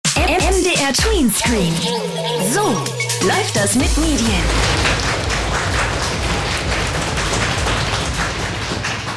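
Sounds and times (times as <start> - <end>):
speech: 0.9 - 5.2
audience applause: 3.8 - 9.1.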